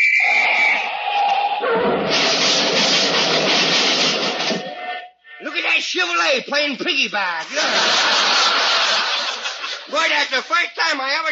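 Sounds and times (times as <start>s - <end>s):
traffic whistle being blown: 0.0s - 1.6s
harsh rushing noise with a pulsing high-pitched hiss: 1.9s - 4.7s
speech: 5.8s - 8.6s, 9.9s - 11.2s
laughter: 7.4s - 10.5s.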